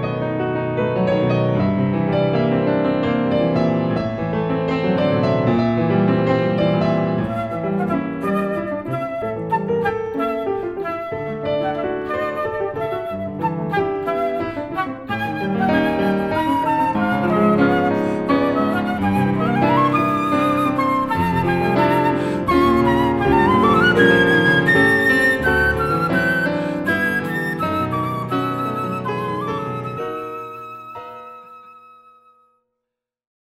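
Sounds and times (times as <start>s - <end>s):
piano: 0.0s - 32.8s
flute: 6.6s - 32.6s.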